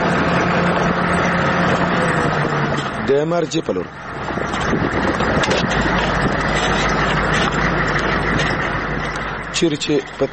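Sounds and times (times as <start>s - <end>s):
car engine rumbling on the way toward Marja district: 0.0s - 10.3s
speech: 3.1s - 8.2s, 9.6s - 10.3s.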